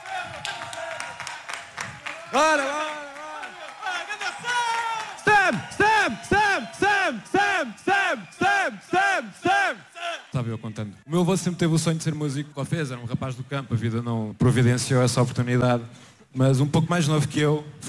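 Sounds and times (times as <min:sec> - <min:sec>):
audience applause: 0:00.0 - 0:10.4
speech: 0:02.3 - 0:02.9, 0:10.4 - 0:17.8.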